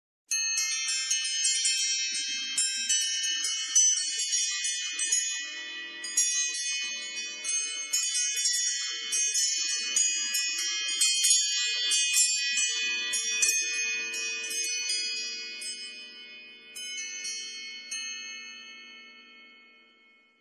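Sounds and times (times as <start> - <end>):
chimes: 0.3 - 20.3.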